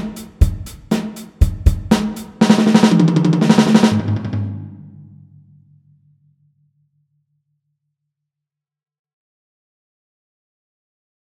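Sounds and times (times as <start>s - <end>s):
drum fill at 120 BPM: 0.0s - 5.2s.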